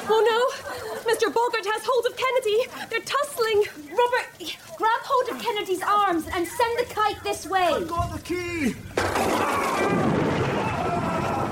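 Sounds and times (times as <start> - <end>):
laughter: 0.0 - 1.6
speech: 1.2 - 10.1
lightning strike crash: 9.0 - 11.5.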